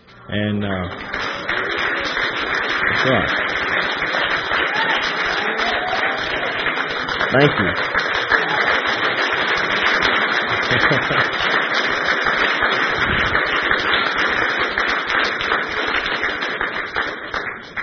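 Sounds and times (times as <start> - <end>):
speech: 0.3 - 1.8, 2.8 - 3.6, 7.3 - 8.0, 10.7 - 11.6
audience applause: 0.9 - 17.8
laughter: 1.1 - 12.1.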